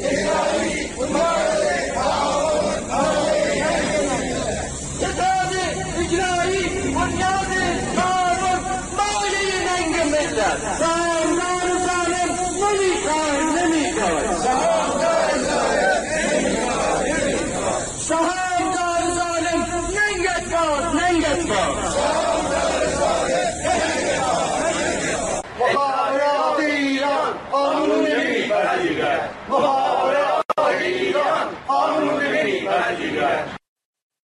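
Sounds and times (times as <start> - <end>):
protest crowd chanting: 0.0 - 33.6.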